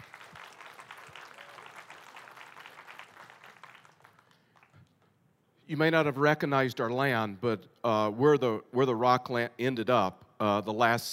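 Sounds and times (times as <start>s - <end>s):
audience clapping: 0.0s - 5.1s
speech: 5.7s - 11.1s.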